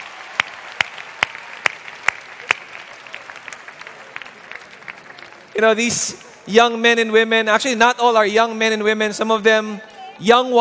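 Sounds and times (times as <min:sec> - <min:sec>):
audience applause: 0:00.0 - 0:06.1
speech: 0:05.6 - 0:10.5.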